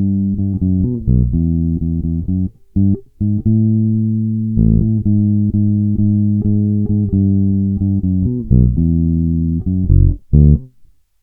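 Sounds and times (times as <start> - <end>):
electric guitar with DiMarzio pickup and jazz flatwound strings: 0.0 - 10.9.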